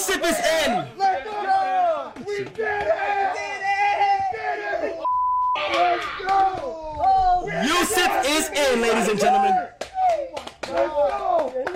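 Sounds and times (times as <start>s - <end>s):
loud excited voices: 0.0s - 11.7s
speech: 0.2s - 1.0s, 8.6s - 9.7s
hand claps: 5.6s - 7.2s, 9.8s - 11.7s.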